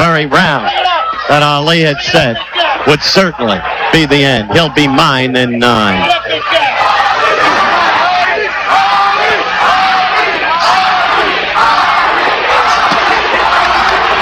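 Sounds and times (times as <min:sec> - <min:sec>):
boxing crowd screaming and chanting: 0:00.0 - 0:14.1
speech: 0:00.2 - 0:00.7, 0:01.3 - 0:06.8.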